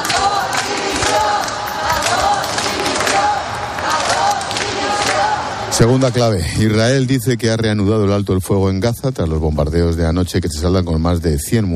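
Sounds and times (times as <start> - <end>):
crowd shouting in protest: 0.0 - 5.9
speech: 5.8 - 11.7.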